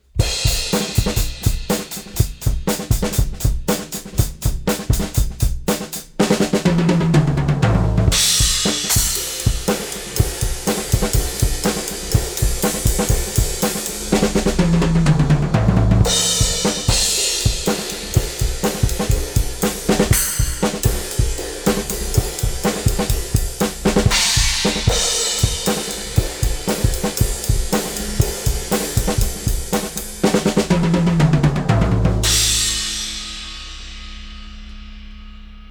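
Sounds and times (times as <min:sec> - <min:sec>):
drums: 0:00.0 - 0:35.6.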